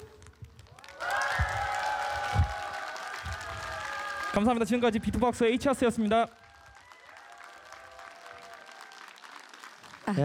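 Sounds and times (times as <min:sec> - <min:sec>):
audience applause: 0:00.1 - 0:10.2
speech: 0:04.4 - 0:06.4.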